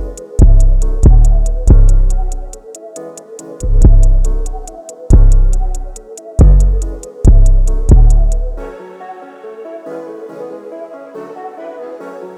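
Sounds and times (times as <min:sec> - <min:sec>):
instrumental type beat: 0:00.0 - 0:08.7.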